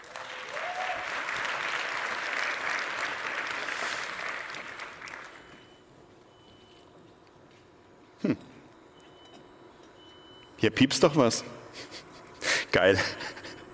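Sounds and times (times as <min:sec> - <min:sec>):
audience applause: 0:00.0 - 0:05.6
speech: 0:08.2 - 0:08.5, 0:10.6 - 0:12.0, 0:12.7 - 0:13.3.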